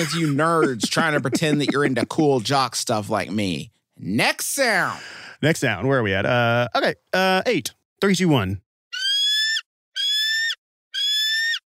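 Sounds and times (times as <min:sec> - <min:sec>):
laughter: 0:00.0 - 0:02.5
speech: 0:00.0 - 0:08.6
baby bald eagle calling: 0:08.9 - 0:11.7.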